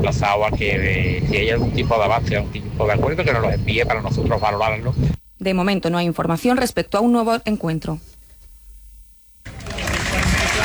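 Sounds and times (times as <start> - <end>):
speech: 0.1 - 8.1
applause in Granada for a coffin: 9.5 - 10.6.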